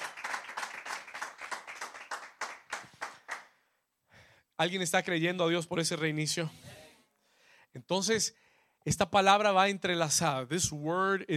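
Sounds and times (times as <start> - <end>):
applause: 0.0 - 3.6
speech: 4.6 - 6.8, 7.9 - 11.3.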